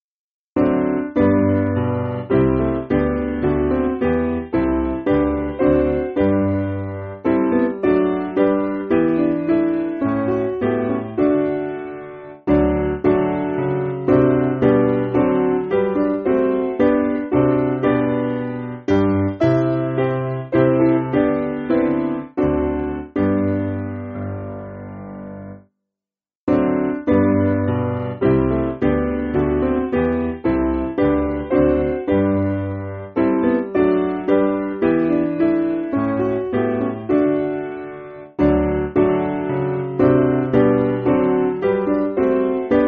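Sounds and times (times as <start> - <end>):
piano backing music for churches: 0.6 - 25.6, 26.5 - 42.8.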